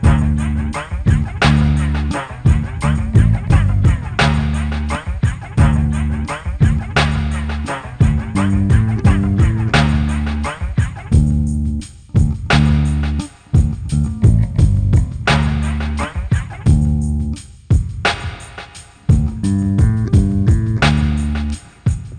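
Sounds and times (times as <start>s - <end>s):
dub music: 0.0s - 22.1s.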